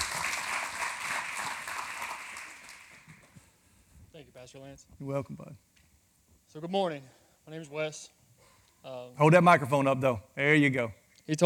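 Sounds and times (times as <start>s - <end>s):
audience clapping hands: 0.0s - 3.5s
speech: 4.4s - 5.7s, 6.5s - 8.2s, 8.8s - 11.4s.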